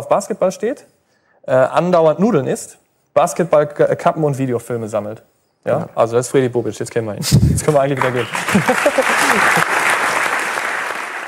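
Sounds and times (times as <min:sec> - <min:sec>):
speech: 0:00.1 - 0:09.7
laughter: 0:07.5 - 0:09.9
audience applause: 0:07.6 - 0:11.2.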